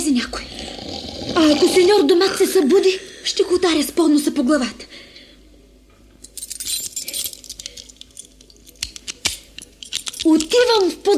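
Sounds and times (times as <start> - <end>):
speech: 0.1 - 4.9, 10.3 - 11.1
metal keys jingling: 6.2 - 10.5.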